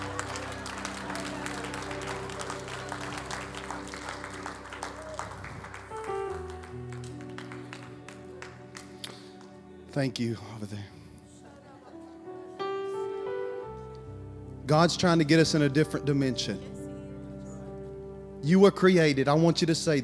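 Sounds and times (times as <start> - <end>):
audience applause: 0.0 - 9.6
sustained organ chords: 0.0 - 20.0
speech: 10.0 - 11.0, 14.7 - 16.7, 18.5 - 20.0.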